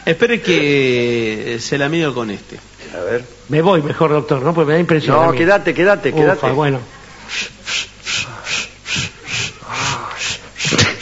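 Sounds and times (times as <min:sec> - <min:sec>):
speech: 0:00.0 - 0:07.6
man panting heavily: 0:08.1 - 0:11.0.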